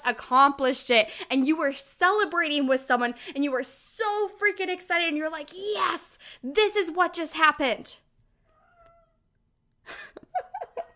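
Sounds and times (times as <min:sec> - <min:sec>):
speech: 0:00.0 - 0:08.0
pet cat meowing insistently: 0:08.5 - 0:09.2.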